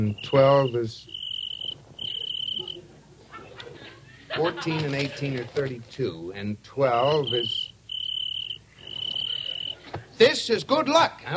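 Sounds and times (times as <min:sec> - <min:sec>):
speech: 0:00.0 - 0:01.2, 0:04.3 - 0:07.6, 0:10.2 - 0:11.3
cricket chirping: 0:00.0 - 0:02.9, 0:07.0 - 0:09.8
laughter: 0:02.1 - 0:05.8, 0:08.8 - 0:10.2.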